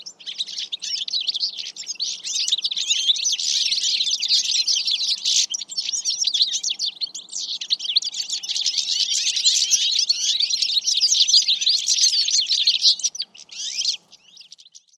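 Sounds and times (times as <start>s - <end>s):
bird chirping and twittering: 0.0s - 14.9s.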